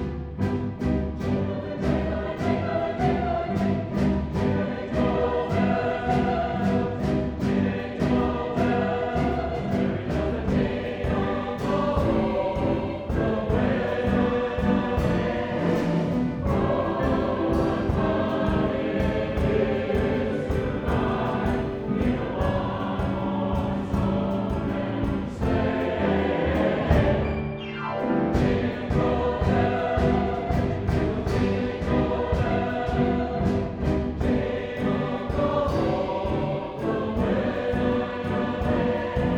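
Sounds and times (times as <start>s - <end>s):
musical variations on a tune: 0.0s - 39.3s.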